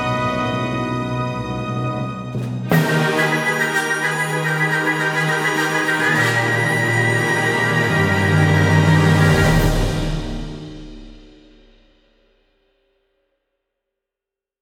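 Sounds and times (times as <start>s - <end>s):
string ensemble: 0.0s - 11.6s.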